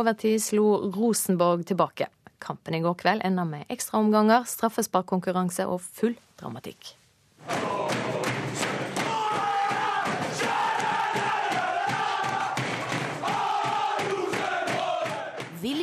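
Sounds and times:
speech: 0.0 - 8.0
team of men cheering and shouting in dressing room: 7.4 - 15.4
rhythmic thumping and stamping: 7.4 - 15.8.

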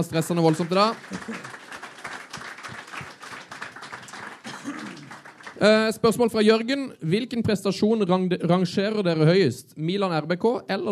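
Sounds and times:
speech: 0.0 - 1.6, 5.6 - 10.9
applause: 0.0 - 6.6.

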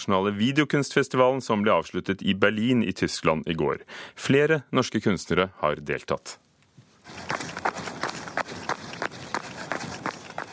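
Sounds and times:
speech: 0.0 - 6.4
hiss: 0.0 - 10.5
footsteps of a young woman jogging on a deserted road: 7.0 - 10.5.

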